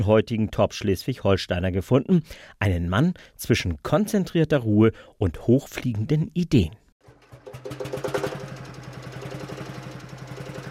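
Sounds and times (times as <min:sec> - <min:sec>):
speech: 0:00.0 - 0:06.8
engine of an ancient 22 hp Landstrecker tractor idling: 0:07.0 - 0:10.7.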